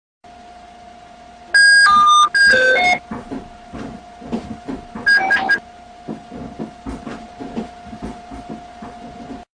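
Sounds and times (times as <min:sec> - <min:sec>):
Akbil card validator sound on IETT transport: 0:01.6 - 0:03.2, 0:05.0 - 0:05.6.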